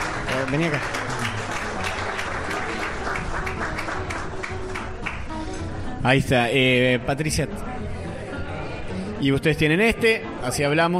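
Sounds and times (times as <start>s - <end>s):
audience applause: 0.0s - 5.3s
speech: 0.4s - 1.1s, 6.0s - 7.7s, 9.2s - 10.9s.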